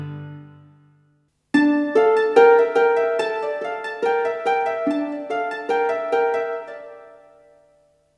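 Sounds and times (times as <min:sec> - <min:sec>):
strings solo on a Kurzweil PC361 keyboard: 0:01.6 - 0:07.4.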